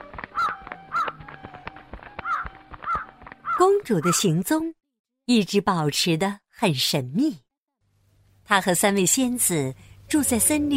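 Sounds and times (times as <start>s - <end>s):
crow cawing: 0.3s - 1.2s, 2.2s - 4.2s
speech: 3.6s - 7.4s, 8.5s - 10.7s.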